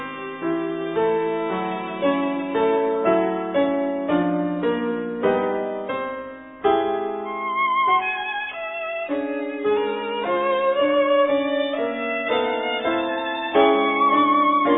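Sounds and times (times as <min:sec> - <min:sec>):
violin: 0:00.0 - 0:05.6, 0:06.6 - 0:14.7.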